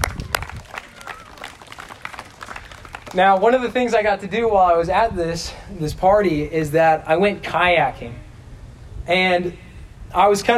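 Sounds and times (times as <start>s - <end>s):
round of applause: 0.0s - 3.7s
speech: 3.1s - 8.2s, 9.1s - 10.5s.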